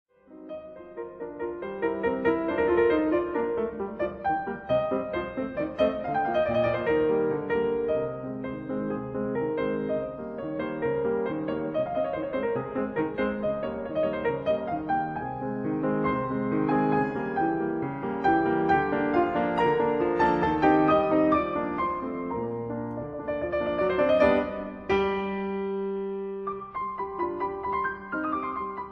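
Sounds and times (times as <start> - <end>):
piano sonata: 0.1 - 28.9.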